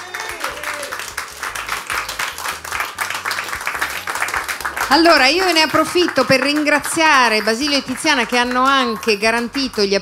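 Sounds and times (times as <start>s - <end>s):
audience applause: 0.0s - 9.9s
speech: 4.9s - 9.9s.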